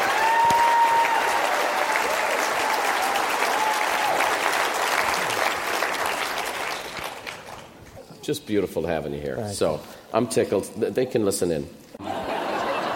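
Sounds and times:
live audience applause for a speaker at a leadership event in Carlsbad: 0:00.0 - 0:07.8
speech: 0:08.2 - 0:11.9
laughter: 0:12.0 - 0:12.9.

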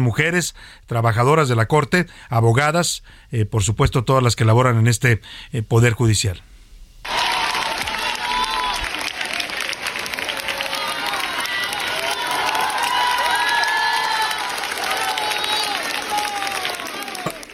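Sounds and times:
speech: 0:00.0 - 0:07.2
welcoming crowd applause: 0:07.0 - 0:17.5
high voices shouting and whooping in welcome: 0:07.1 - 0:17.5.

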